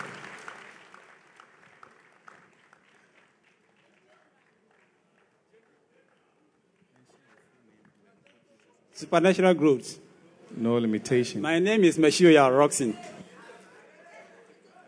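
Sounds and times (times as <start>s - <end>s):
audience applause at a church service: 0.0s - 7.0s
speech: 9.0s - 10.0s, 10.6s - 13.2s.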